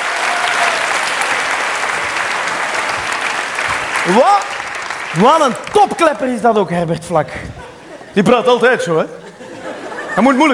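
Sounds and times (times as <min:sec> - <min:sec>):
audience applause: 0:00.0 - 0:06.4
speech: 0:04.1 - 0:07.6, 0:08.2 - 0:09.2, 0:10.2 - 0:10.5
laughter: 0:07.3 - 0:10.5.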